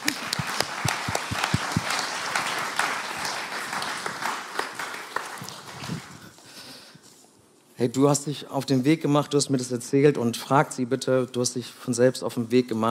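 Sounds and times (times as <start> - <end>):
audience applause: 0.0 - 6.3
speech: 7.8 - 12.9.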